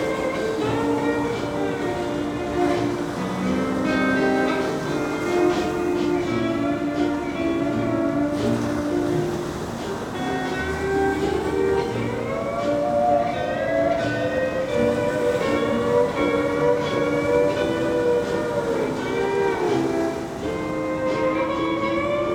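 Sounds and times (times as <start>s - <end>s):
ocean waves on Kauai: 0.0s - 22.3s
song playing: 0.0s - 22.3s.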